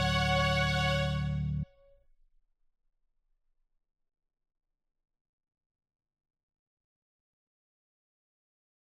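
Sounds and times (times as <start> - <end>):
bass: 0.0 - 1.7
strings: 0.0 - 1.7.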